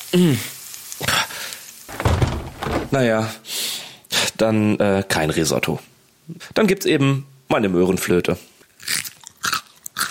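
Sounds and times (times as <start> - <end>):
onions burning and sizzling in a pan: 0.0 - 1.9
speech: 0.1 - 1.2, 2.9 - 3.5, 4.4 - 8.5.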